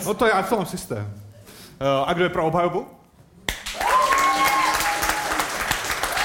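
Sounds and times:
speech: 0.0 - 3.0
audience applause: 3.6 - 6.2.

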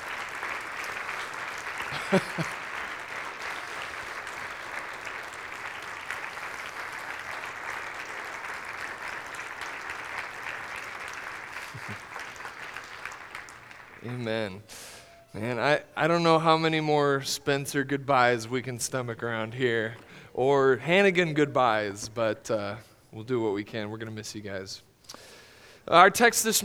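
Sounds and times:
audience applause: 0.0 - 22.8
laughter: 0.0 - 23.6
person cheering: 1.6 - 5.0, 11.5 - 13.2, 14.0 - 17.1
speech: 1.9 - 2.6, 14.1 - 24.9, 25.9 - 26.6.

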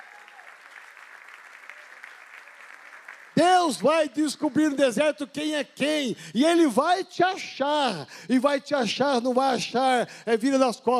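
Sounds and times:
audience applauding: 0.0 - 4.7
speech: 3.4 - 10.9.

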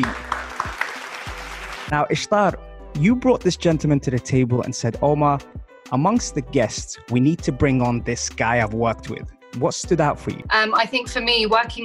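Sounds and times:
speech: 0.0 - 0.2, 1.9 - 11.8
round of applause: 0.0 - 2.0.

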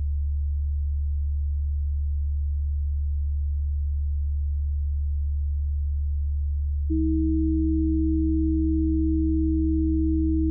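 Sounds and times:
low pure sine tone: 0.0 - 10.5
two higher pure sine tones beating: 6.9 - 10.5.

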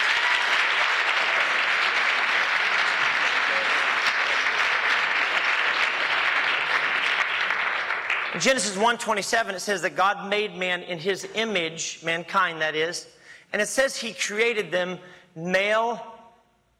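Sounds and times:
round of applause: 0.0 - 8.7
speech: 8.4 - 16.1.

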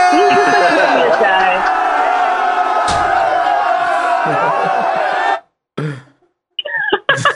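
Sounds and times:
people cheering: 0.0 - 5.5
laughter: 3.2 - 5.4, 6.6 - 7.3.

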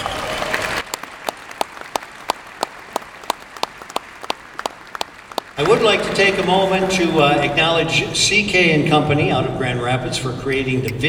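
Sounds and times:
audience round of applause: 0.0 - 7.9
speech: 5.6 - 11.0.

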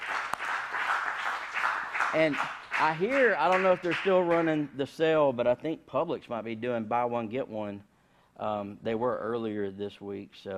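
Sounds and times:
applause: 0.0 - 4.7
speech: 2.1 - 10.5.

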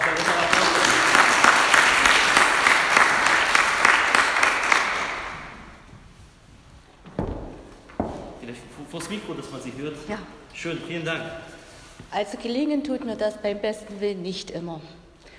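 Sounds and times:
audience applause: 0.0 - 5.8
speech: 9.5 - 11.5, 12.1 - 15.0.

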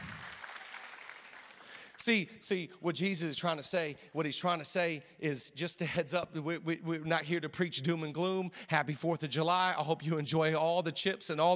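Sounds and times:
audience applause: 0.0 - 2.0
speech: 2.0 - 11.5.

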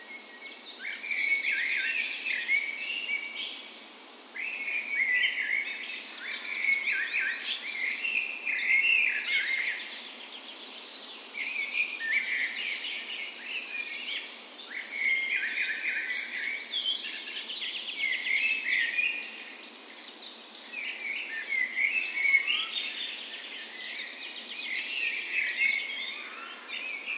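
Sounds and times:
dawn chorus of birds: 0.0 - 27.1
steady hiss: 0.0 - 27.1.

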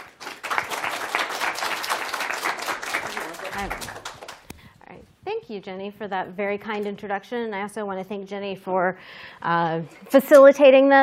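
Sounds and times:
audience applause: 0.0 - 4.4
speech: 3.6 - 4.0, 5.5 - 11.0.

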